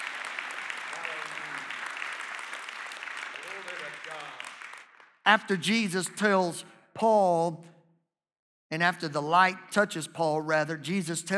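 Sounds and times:
audience clapping hands: 0.0s - 5.4s
speech: 5.3s - 7.7s, 8.7s - 11.3s.

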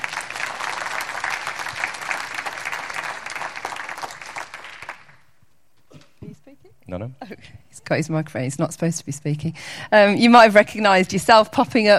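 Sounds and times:
crowd applause: 0.0s - 5.2s
speech: 6.9s - 11.9s.

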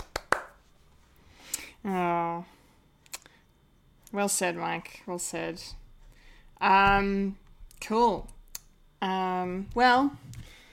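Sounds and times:
hand claps: 0.0s - 0.6s
speech: 1.8s - 2.6s, 4.1s - 5.8s, 6.6s - 8.4s, 9.0s - 10.6s.

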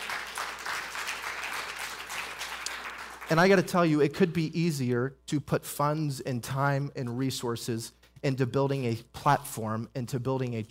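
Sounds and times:
crowd applause: 0.0s - 3.3s
speech: 3.3s - 10.6s.

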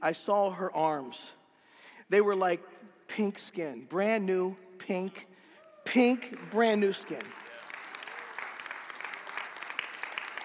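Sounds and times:
speech: 0.0s - 1.4s, 2.1s - 7.5s
audience clapping: 5.9s - 10.4s.

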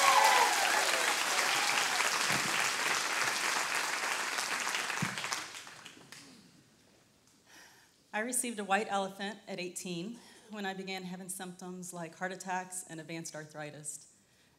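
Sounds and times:
audience applause: 0.0s - 6.2s
speech: 8.2s - 14.1s.

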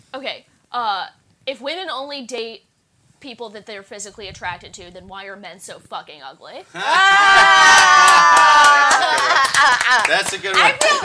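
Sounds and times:
speech: 0.1s - 11.0s
crowd cheering and whooping: 6.8s - 11.0s
laughter: 6.8s - 11.0s
handclaps: 7.7s - 11.0s.

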